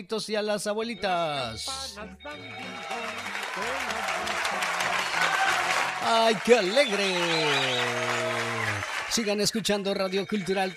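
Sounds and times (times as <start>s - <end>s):
speech: 0.0s - 8.3s, 9.1s - 10.7s
audience applause: 2.3s - 10.7s.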